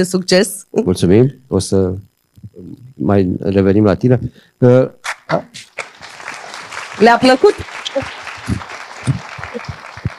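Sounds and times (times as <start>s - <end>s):
speech: 0.0s - 5.7s, 7.0s - 9.7s
audience applause at an event for entrepreneurs: 5.7s - 10.1s.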